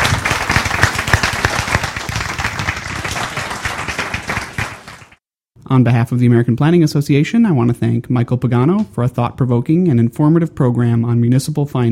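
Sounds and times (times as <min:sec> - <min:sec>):
audience applause: 0:00.0 - 0:05.2
speech: 0:05.7 - 0:11.9.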